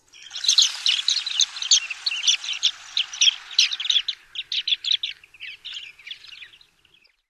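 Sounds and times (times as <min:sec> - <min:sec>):
flight calls: 0:00.1 - 0:06.7.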